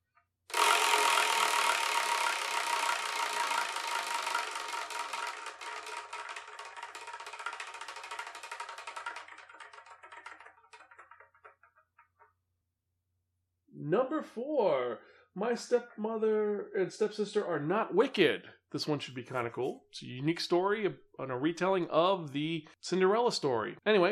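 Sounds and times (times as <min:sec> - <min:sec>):
wheel spun to pick the next manga review clicking: 0:00.5 - 0:12.3
speech: 0:13.9 - 0:24.1.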